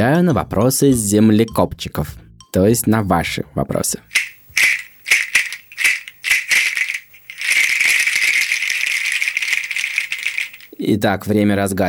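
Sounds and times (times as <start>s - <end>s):
speech: 0.0s - 4.2s, 10.9s - 11.8s
rattle made of entada bean seeds shaking: 4.1s - 10.8s.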